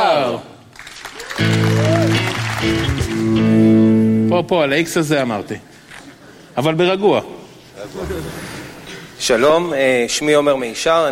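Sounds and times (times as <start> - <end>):
audience clapping: 0.7 - 3.8
speech: 4.3 - 5.7, 6.6 - 8.6, 9.2 - 11.1.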